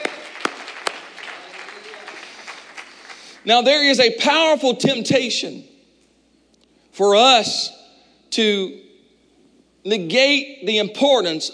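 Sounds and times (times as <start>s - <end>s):
audience clapping: 0.0s - 3.5s
speech: 3.4s - 5.7s, 7.0s - 8.8s, 9.8s - 11.5s.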